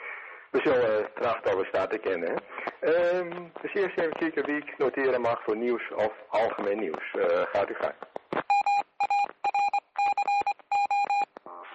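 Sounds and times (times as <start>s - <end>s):
speech: 0.5s - 8.1s
dual-pitched electronic beeps on a phone line: 8.5s - 11.3s.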